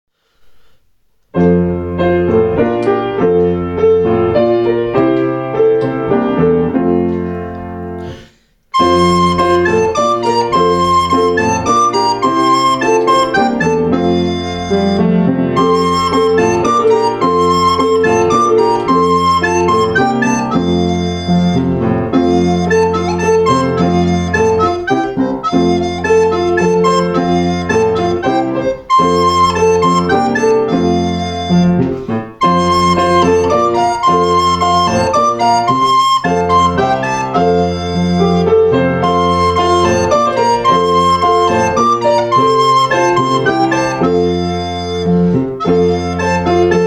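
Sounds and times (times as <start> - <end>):
instrumental carol: 1.4 - 46.8.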